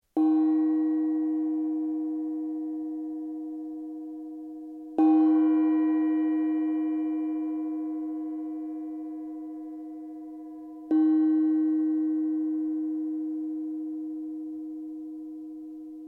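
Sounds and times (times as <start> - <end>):
table gong: 0.2 - 16.0.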